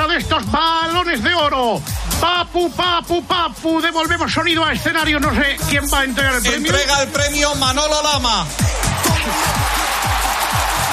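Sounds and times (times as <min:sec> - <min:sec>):
speech: 0:00.2 - 0:09.8
audience ovation, applause and cheering: 0:08.6 - 0:10.9.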